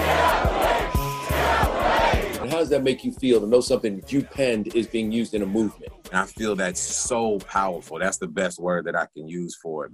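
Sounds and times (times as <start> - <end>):
protest crowd yelling at police: 0.0 - 2.5
speech: 2.6 - 9.9.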